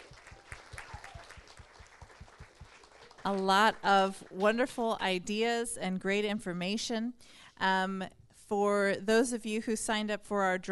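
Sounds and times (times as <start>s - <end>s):
audience applause for panel: 0.0s - 4.4s
speech: 3.2s - 10.6s.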